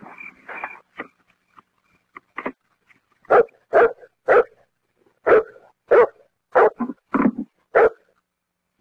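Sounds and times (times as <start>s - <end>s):
dog barking: 3.3s - 4.7s, 5.2s - 6.9s, 7.7s - 8.1s.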